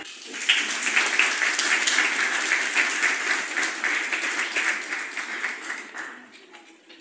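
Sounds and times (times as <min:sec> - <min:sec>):
applause: 0:00.0 - 0:06.5.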